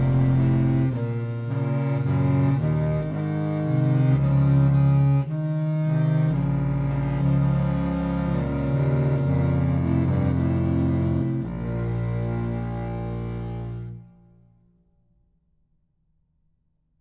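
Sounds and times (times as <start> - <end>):
Eppelsheim contrabass saxophones: 0.0 - 14.4.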